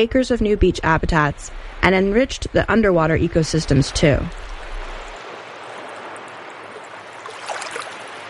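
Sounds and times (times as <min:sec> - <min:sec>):
speech: 0:00.0 - 0:04.5
water splashes and gurgles: 0:03.2 - 0:08.2
river water flowing into a bay: 0:04.3 - 0:08.2.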